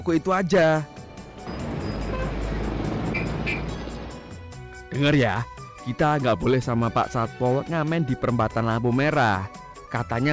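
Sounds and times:
speech: 0.0s - 0.9s, 4.9s - 10.3s
road noise: 0.9s - 4.9s
patrol car engine rumble: 1.0s - 4.8s.

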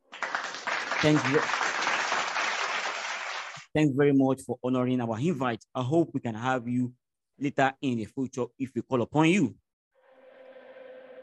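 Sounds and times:
applause: 0.0s - 3.7s
speech: 1.0s - 1.6s, 3.7s - 9.6s.

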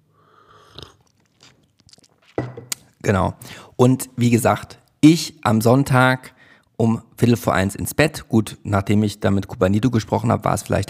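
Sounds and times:
sip of a tea drink at a microphone: 0.2s - 2.9s
speech: 3.1s - 10.8s.

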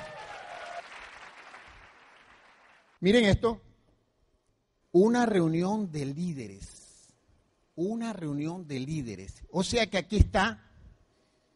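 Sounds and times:
audience applause: 0.0s - 3.0s
speech: 3.0s - 3.7s, 4.9s - 6.8s, 7.8s - 10.6s.

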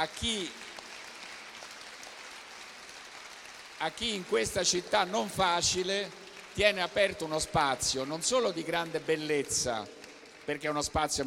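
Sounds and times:
speech: 0.0s - 0.6s, 3.8s - 11.2s
audience applause: 0.0s - 11.2s.

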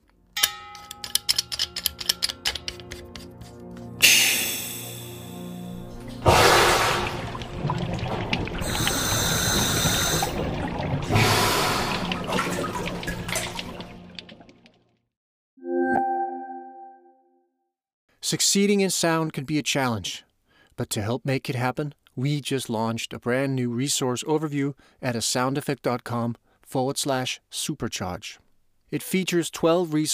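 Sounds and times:
short ringing metallic ping: 0.4s - 1.8s
scuba gear sharp clicks and ticks: 0.8s - 4.2s
underwater bursts of bubbling hissy air: 5.8s - 14.7s
speech: 18.3s - 30.1s.

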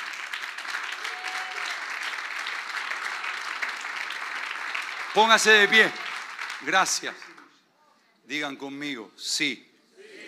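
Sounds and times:
audience applauding: 0.0s - 7.6s
speech: 5.2s - 6.0s, 6.6s - 7.3s, 8.3s - 9.7s.

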